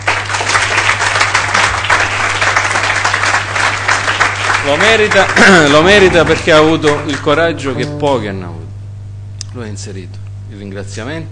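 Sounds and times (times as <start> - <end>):
audience applause: 0.0 - 8.2
speech: 4.7 - 8.6, 9.5 - 11.3.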